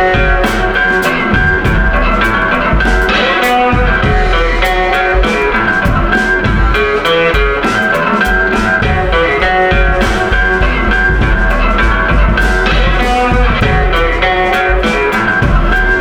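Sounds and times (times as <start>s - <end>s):
drums: 0.0s - 16.0s
gritty slide guitar: 0.0s - 16.0s.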